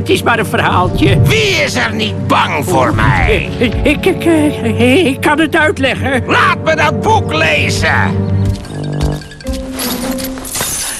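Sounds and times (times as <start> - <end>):
speech: 0.1 - 8.4
treasure coins jingling: 8.6 - 10.9.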